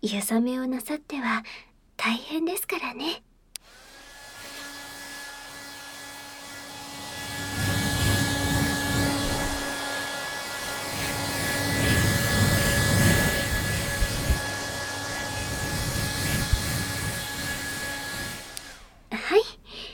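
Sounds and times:
speech: 0:00.0 - 0:03.3
hair dryer blowing: 0:03.6 - 0:19.0.

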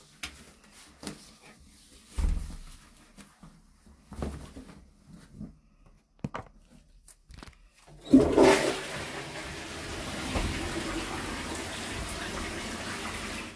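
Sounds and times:
person urinating in a toilet: 0:08.0 - 0:13.5.

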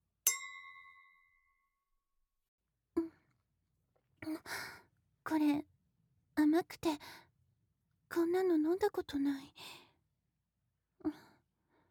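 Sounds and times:
glasses clinking in a toast: 0:00.3 - 0:01.0
speech: 0:04.2 - 0:04.7, 0:05.3 - 0:05.6, 0:06.5 - 0:07.2, 0:08.2 - 0:09.8.

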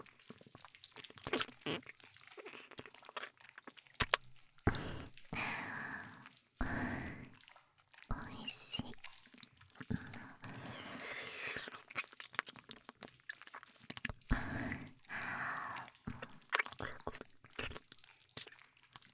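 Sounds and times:
binaural ear licking sounds: 0:00.0 - 0:19.1.

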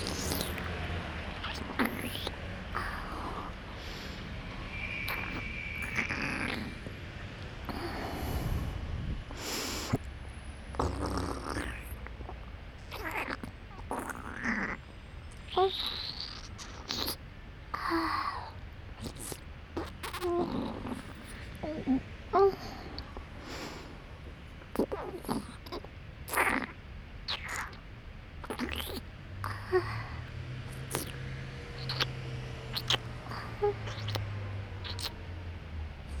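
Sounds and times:
wet mouth sounds in right ear: 0:00.0 - 0:00.8, 0:01.4 - 0:04.2, 0:05.0 - 0:07.0, 0:10.7 - 0:17.2, 0:17.8 - 0:21.9, 0:24.6 - 0:35.2
national highway traffic: 0:00.0 - 0:36.1.

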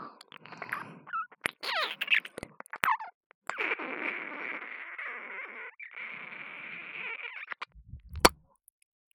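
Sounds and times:
ear kissing ASMR: 0:00.3 - 0:06.0, 0:07.1 - 0:08.4.

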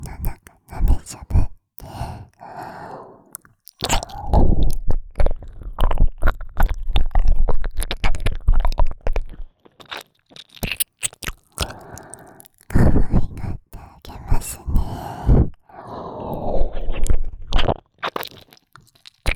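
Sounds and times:
person whispering: 0:00.0 - 0:04.8, 0:11.6 - 0:17.2
ear licking: 0:00.0 - 0:06.0, 0:06.6 - 0:15.2, 0:16.2 - 0:19.3.

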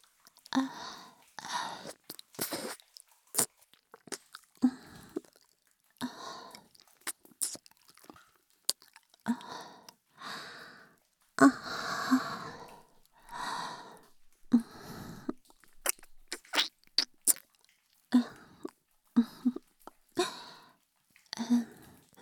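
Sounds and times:
ear licking: 0:01.4 - 0:05.5, 0:06.4 - 0:10.0, 0:11.4 - 0:20.6.

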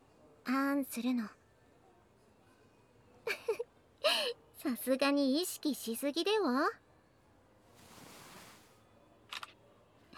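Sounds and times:
speech: 0:00.5 - 0:01.4, 0:04.6 - 0:06.8
soft low rustle: 0:07.7 - 0:08.8.

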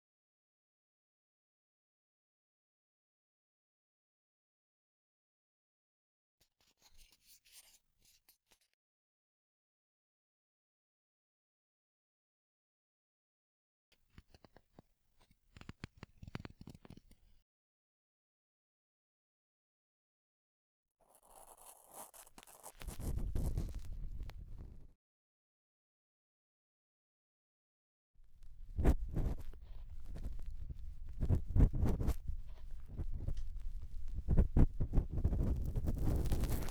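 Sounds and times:
bamboo ear pick scraping deep inside right ear: 0:21.3 - 0:24.8, 0:28.4 - 0:36.7.

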